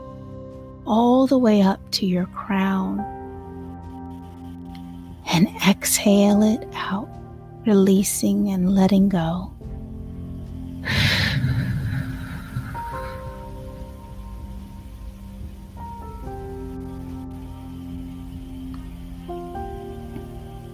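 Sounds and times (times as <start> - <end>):
speech: 0.9 - 3.2, 5.4 - 9.6
vacuum cleaner humming: 8.6 - 20.7.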